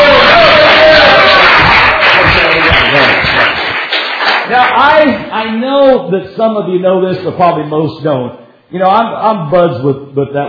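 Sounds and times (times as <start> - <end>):
audience applause: 0.0 - 5.1
speech: 5.4 - 10.4.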